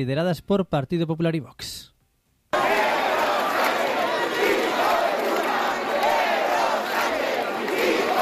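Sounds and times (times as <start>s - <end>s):
speech: 0.0s - 1.9s
protest crowd shouting chants: 2.6s - 8.2s.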